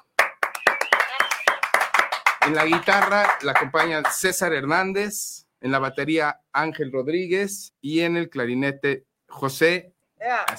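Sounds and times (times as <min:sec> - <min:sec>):
applause: 0:00.0 - 0:04.4
speech: 0:02.4 - 0:10.5.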